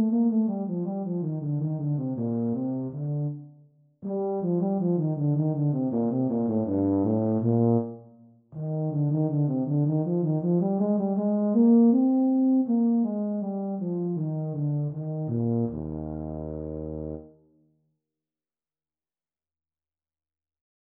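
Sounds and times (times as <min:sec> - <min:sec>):
E-flat tuba duet: 0:00.0 - 0:03.4, 0:04.1 - 0:17.4.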